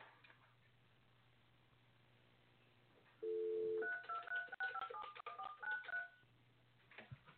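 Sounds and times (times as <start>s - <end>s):
telephone dialing tones as a caller dials in by phone: 3.2s - 6.2s
telephone keypad beeps: 3.2s - 6.2s.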